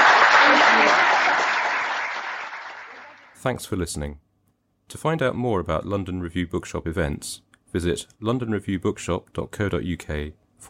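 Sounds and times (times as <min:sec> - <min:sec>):
audience applause: 0:00.0 - 0:03.4
speech: 0:03.4 - 0:04.2, 0:04.9 - 0:10.6.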